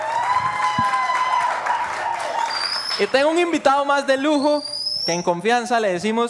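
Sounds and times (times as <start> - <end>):
audience applause: 0.0 - 3.6
high whistle-like tones: 2.4 - 3.2, 4.2 - 5.6
speech: 3.0 - 6.2.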